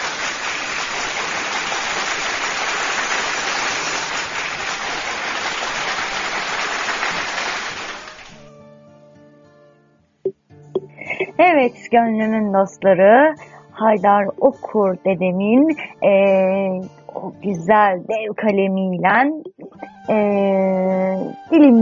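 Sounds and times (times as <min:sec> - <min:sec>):
crowd applause: 0:00.0 - 0:08.4
speech: 0:11.6 - 0:21.8.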